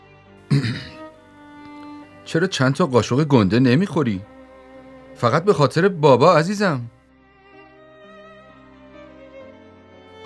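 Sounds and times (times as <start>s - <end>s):
throat clearing: 0.5s - 1.0s
speech: 2.3s - 4.3s, 5.2s - 7.0s.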